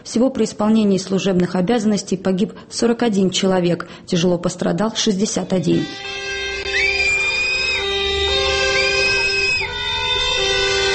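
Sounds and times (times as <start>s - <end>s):
speech: 0.0s - 6.9s
blaring horn-like tones: 5.3s - 10.9s
protesters' shrill whistling: 6.0s - 10.9s.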